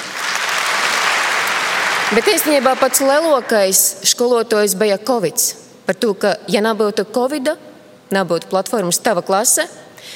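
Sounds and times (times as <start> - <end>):
audience applause: 0.0 - 3.6
speech: 2.1 - 10.1.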